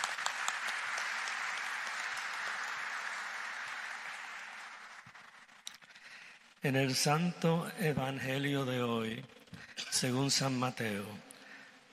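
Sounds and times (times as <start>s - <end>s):
audience applause: 0.0s - 6.4s
speech: 6.6s - 9.4s, 10.0s - 11.3s.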